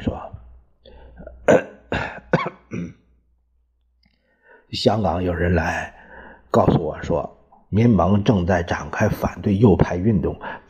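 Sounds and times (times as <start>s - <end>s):
person coughing: 1.5s - 3.1s
speech: 4.7s - 10.6s.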